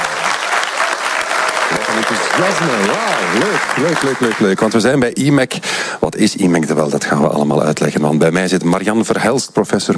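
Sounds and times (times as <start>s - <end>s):
live audience applauding: 0.0s - 5.1s
speech: 2.0s - 9.9s.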